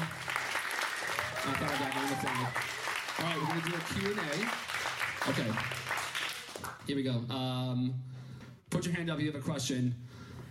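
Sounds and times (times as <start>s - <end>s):
crowd applause: 0.0s - 6.8s
speech: 1.5s - 5.8s, 6.8s - 8.1s, 8.8s - 10.2s.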